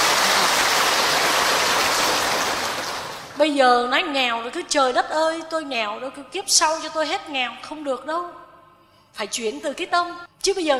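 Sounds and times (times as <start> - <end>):
audience applause: 0.0 - 3.4
speech: 3.4 - 8.4, 9.2 - 10.7.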